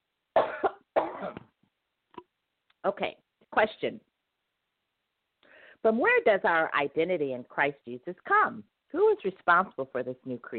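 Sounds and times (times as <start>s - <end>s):
cough: 0.3s - 1.6s
speech: 2.8s - 4.1s, 5.8s - 10.5s.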